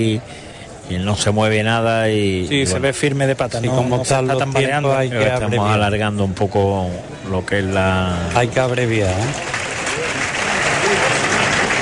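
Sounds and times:
speech: 0:00.0 - 0:09.6
faint murmur of voices: 0:00.0 - 0:11.7
bullring crowd applauding as the bull dies: 0:08.3 - 0:11.7.

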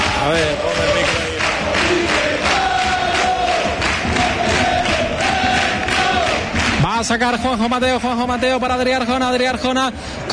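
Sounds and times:
football fans shouting and chanting: 0:00.0 - 0:06.8
speech: 0:00.2 - 0:01.0, 0:07.0 - 0:10.3.

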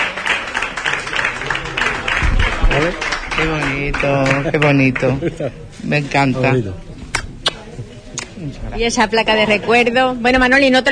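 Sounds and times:
audience applause: 0:00.0 - 0:05.2
speech: 0:02.8 - 0:06.9, 0:08.4 - 0:10.9.

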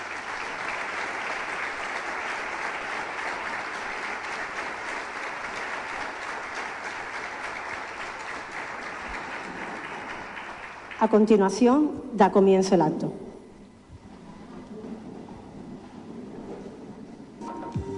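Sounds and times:
audience applause: 0:00.0 - 0:11.3
speech: 0:11.0 - 0:13.2.

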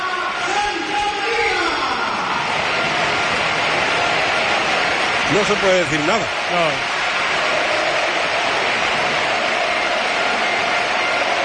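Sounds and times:
standing ovation from stadium crowd: 0:00.0 - 0:11.4
speech: 0:05.3 - 0:06.9.

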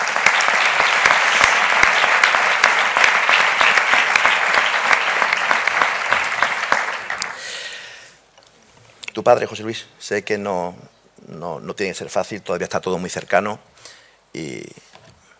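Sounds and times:
audience applause: 0:00.0 - 0:07.8
speech: 0:09.2 - 0:14.8.

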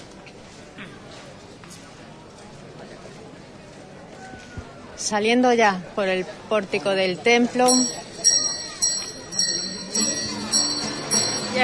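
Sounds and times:
low murmur of voices: 0:00.0 - 0:11.6
speech: 0:05.0 - 0:08.0
procession bells of campanilleros ringing: 0:07.5 - 0:11.6.

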